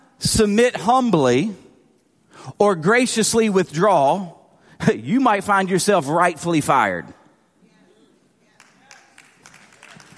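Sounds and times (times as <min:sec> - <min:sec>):
speech: 0:00.2 - 0:01.6, 0:02.4 - 0:07.2
scattered audience claps: 0:08.5 - 0:10.1.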